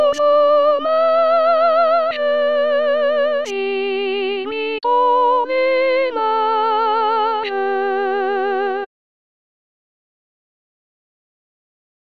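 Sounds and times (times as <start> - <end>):
soprano singing a Christmas cantata: 0.0 - 8.9.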